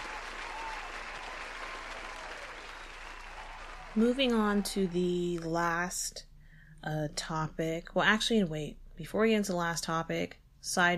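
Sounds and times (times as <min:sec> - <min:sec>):
applause from many hands: 0:00.0 - 0:05.5
speech: 0:04.0 - 0:10.9.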